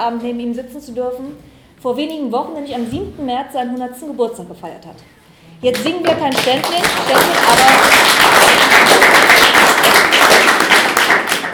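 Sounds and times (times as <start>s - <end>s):
speech: 0.0s - 9.1s
audience applause: 5.8s - 11.5s.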